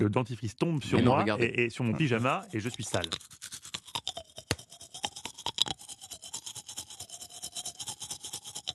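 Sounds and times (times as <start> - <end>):
speech: 0.0 - 3.4
toothbrush scrubbing as a man brushes his teeth: 1.8 - 8.7.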